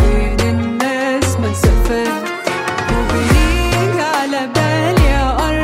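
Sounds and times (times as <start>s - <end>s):
Arabic music ringtone: 0.2s - 5.5s.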